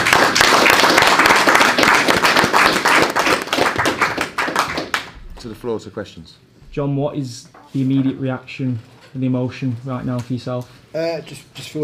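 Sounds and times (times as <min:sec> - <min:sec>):
round of applause: 0:00.0 - 0:05.2
speech: 0:05.6 - 0:11.8.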